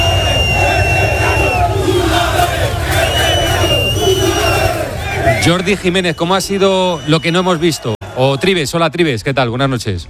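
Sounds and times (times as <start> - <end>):
high whistles and cries: 0.0 - 2.2, 2.9 - 7.9
crowd shouting as team bus departs: 0.0 - 8.5
speech: 5.4 - 10.0.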